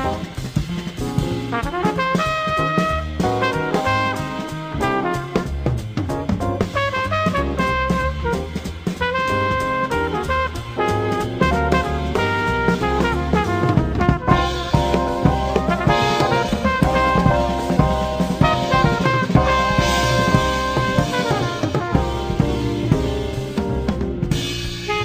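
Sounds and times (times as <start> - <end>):
saxophone: 0.0 - 5.9, 6.6 - 23.6, 24.8 - 25.0
trumpet: 0.0 - 25.0.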